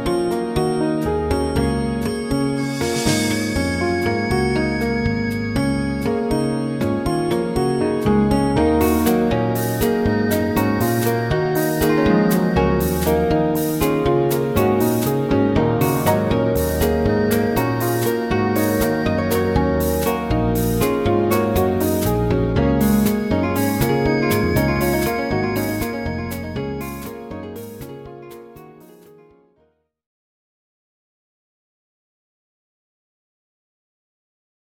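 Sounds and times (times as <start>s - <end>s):
fusion music: 0.0s - 29.2s.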